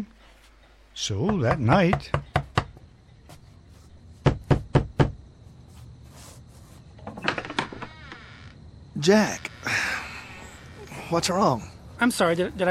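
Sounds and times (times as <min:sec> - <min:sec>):
speech: 0:01.0 - 0:02.3, 0:09.0 - 0:09.8, 0:11.1 - 0:12.7
knocking on a door: 0:01.2 - 0:02.8, 0:04.2 - 0:05.2
soft shuffling: 0:03.2 - 0:04.2, 0:05.4 - 0:07.0.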